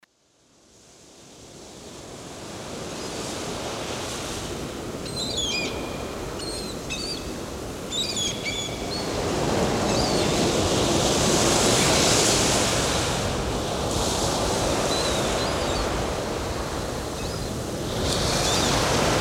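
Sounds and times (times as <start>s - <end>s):
sea surf: 0.8s - 19.1s.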